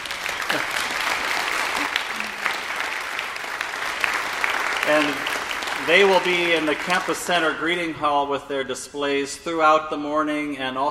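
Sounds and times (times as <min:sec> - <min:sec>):
audience applause: 0:00.0 - 0:07.6
speech: 0:04.9 - 0:10.8.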